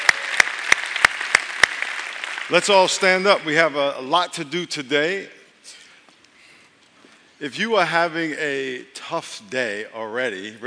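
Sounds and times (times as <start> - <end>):
hand claps: 0.0 - 2.5
constant hiss: 0.2 - 10.6
speech: 2.5 - 5.4, 7.4 - 10.6.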